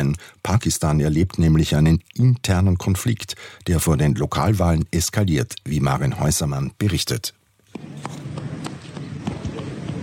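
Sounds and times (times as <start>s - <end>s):
speech: 0.0s - 7.9s
footsteps of small boy running across town square in Muzaffarabad, Kashmir: 7.7s - 10.0s.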